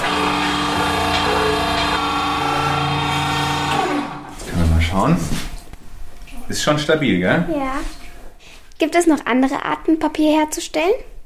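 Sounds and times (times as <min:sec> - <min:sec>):
press machine running, pressing felt sheets: 0:00.0 - 0:04.5
speech: 0:05.0 - 0:05.5, 0:06.5 - 0:08.0, 0:08.8 - 0:11.1.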